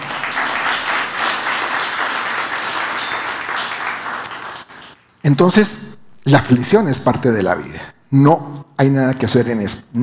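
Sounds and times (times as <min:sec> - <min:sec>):
audience applause: 0:00.0 - 0:05.0
speech: 0:05.3 - 0:10.0.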